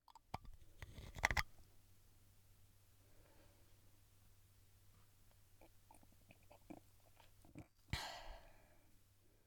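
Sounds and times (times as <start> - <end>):
beer opening: 0.1 - 1.5.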